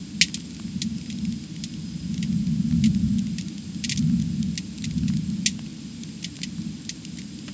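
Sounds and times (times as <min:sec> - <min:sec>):
fire crackling: 0:00.0 - 0:07.5.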